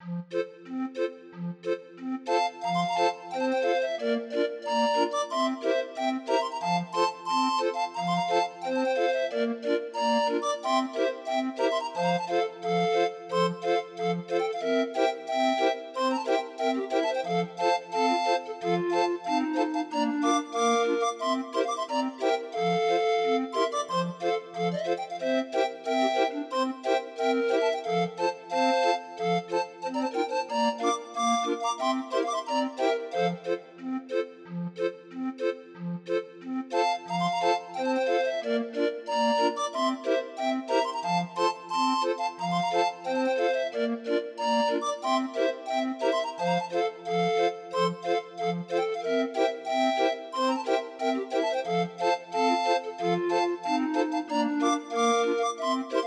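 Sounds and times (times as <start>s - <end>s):
grind organ tune: 0.2s - 56.0s.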